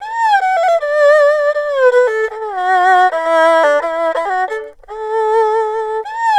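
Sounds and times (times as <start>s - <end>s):
erhu playing: 0.0s - 6.3s.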